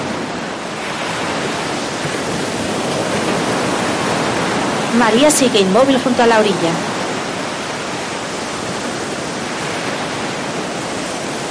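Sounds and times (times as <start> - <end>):
ocean waves on the shore: 0.0 - 11.4
speech: 5.0 - 6.9.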